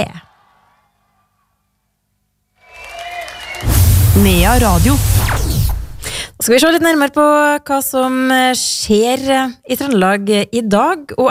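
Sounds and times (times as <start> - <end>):
speech: 0.0 - 0.2, 4.2 - 5.1, 6.4 - 11.2
audience cheering and applause: 0.2 - 1.6, 2.6 - 5.2.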